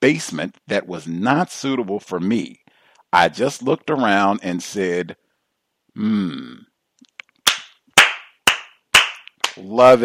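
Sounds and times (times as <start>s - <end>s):
speech: 0.0s - 5.2s, 6.0s - 6.7s, 9.6s - 10.0s
person humming: 6.0s - 6.6s
one person clapping hands in an office: 7.4s - 9.7s.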